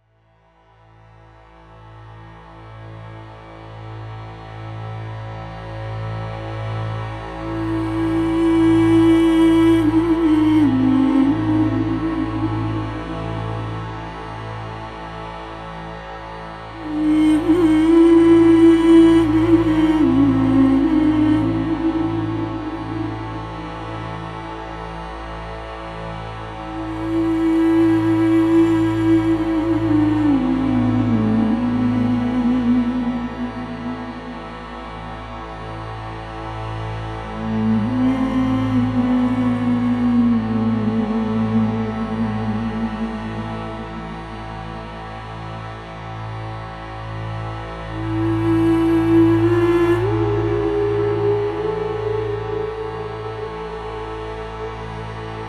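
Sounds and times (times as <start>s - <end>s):
new age cinematic vocals: 7.3s - 14.2s, 16.8s - 24.7s, 26.6s - 35.9s, 37.2s - 45.1s, 48.0s - 55.4s.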